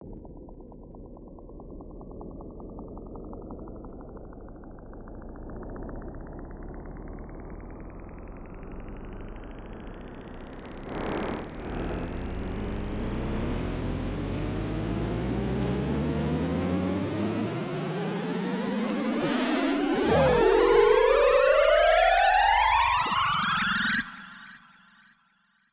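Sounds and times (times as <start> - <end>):
riser synth: 7.5 - 25.2.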